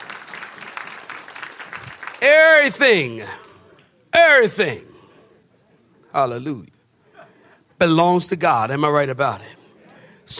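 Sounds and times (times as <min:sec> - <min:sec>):
audience clapping hands: 0:00.0 - 0:03.9
speech: 0:02.2 - 0:03.4, 0:04.2 - 0:04.9, 0:06.1 - 0:06.7, 0:07.8 - 0:09.6.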